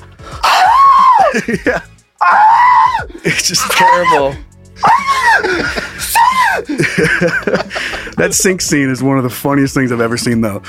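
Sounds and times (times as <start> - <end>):
man imitating a scream of a man with a tarantula on his face: 0.4 - 1.4, 2.2 - 6.8
laughter: 1.3 - 1.8, 4.8 - 8.8
speech: 1.4 - 5.9, 6.6 - 10.6.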